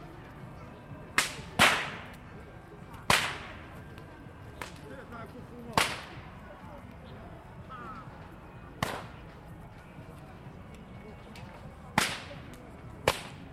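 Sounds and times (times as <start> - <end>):
crowd murmur in Luxun Park: 0.0 - 13.5
faint chatter: 0.0 - 13.5
whips cracking in Luxun Park: 1.2 - 2.2, 3.0 - 3.6, 4.6 - 4.8, 5.7 - 6.2, 8.8 - 9.2, 11.9 - 13.5.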